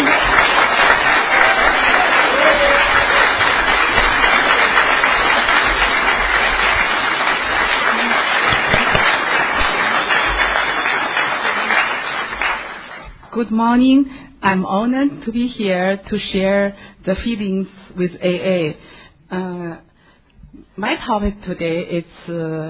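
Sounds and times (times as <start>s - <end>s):
audience applauding to welcome a conference speaker: 0.0s - 13.1s
speech: 13.5s - 19.9s, 20.5s - 22.6s.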